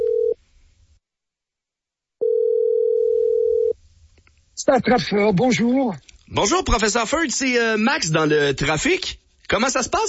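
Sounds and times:
telephone ringing: 0:00.0 - 0:00.4, 0:02.2 - 0:03.8
speech: 0:04.6 - 0:10.0.

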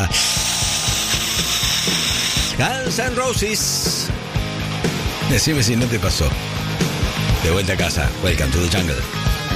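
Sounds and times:
dentist's drill sound effect on a hollow holed tooth: 0:00.0 - 0:02.6
speech: 0:02.6 - 0:04.3, 0:05.3 - 0:09.2.

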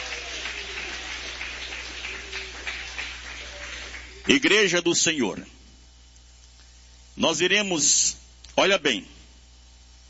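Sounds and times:
audience clapping hands: 0:00.0 - 0:04.8
speech: 0:04.3 - 0:05.6, 0:07.2 - 0:09.2.

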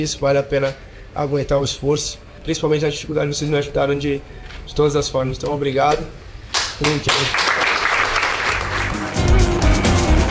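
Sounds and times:
speech: 0:00.0 - 0:06.2, 0:06.8 - 0:07.5
applause from a group in a room: 0:06.5 - 0:10.1.

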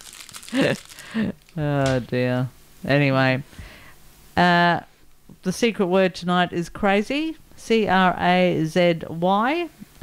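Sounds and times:
lolly wrappers being opened next to a microphone: 0:00.0 - 0:01.6
speech: 0:00.5 - 0:03.6, 0:04.4 - 0:10.0.

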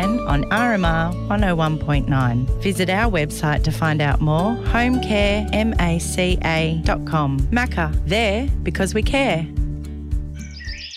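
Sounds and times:
speech: 0:00.2 - 0:09.6
birdsong in a garden: 0:10.4 - 0:10.9.

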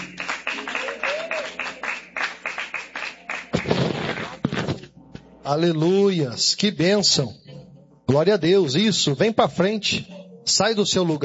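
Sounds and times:
audience clapping: 0:00.0 - 0:04.8
speech: 0:05.5 - 0:07.4, 0:08.1 - 0:11.2.

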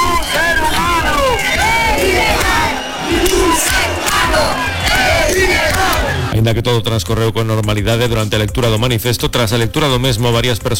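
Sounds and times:
crowd of protesters shouting slogans: 0:00.0 - 0:06.3
speech: 0:06.4 - 0:10.7.

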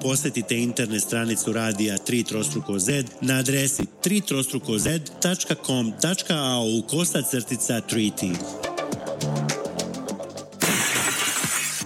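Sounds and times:
speech: 0:00.0 - 0:09.5
windscreen glass shattering in a car glass repair advert: 0:10.6 - 0:11.8.

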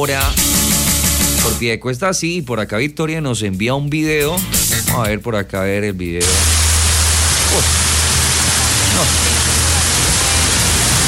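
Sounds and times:
speech: 0:00.0 - 0:00.6, 0:01.4 - 0:06.6
heavy rain downpour in Piedecuesta: 0:06.2 - 0:11.0.

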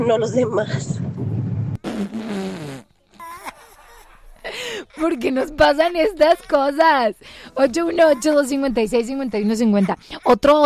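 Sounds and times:
speech: 0:00.0 - 0:01.1, 0:02.0 - 0:02.4, 0:05.0 - 0:10.6
fart sound effect: 0:01.2 - 0:03.0.

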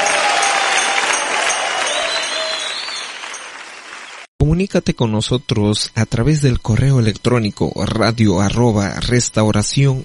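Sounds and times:
audience applause: 0:00.0 - 0:04.3
speech: 0:04.5 - 0:10.0.

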